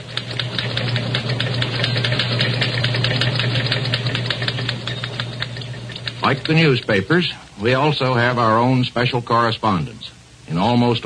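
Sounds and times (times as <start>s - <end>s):
low constant hum: 0.0s - 11.0s
typewriters clattering in a newsroom: 0.2s - 6.8s
speech: 6.3s - 11.0s.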